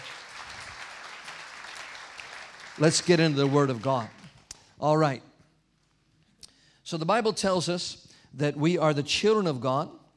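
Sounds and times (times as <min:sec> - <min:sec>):
audience clapping: 0:00.0 - 0:04.6
speech: 0:02.8 - 0:04.2, 0:04.8 - 0:05.3, 0:06.9 - 0:10.0.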